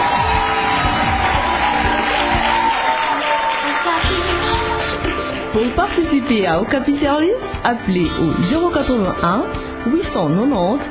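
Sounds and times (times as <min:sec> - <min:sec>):
applause: 0:00.0 - 0:06.4
speech: 0:05.6 - 0:10.8.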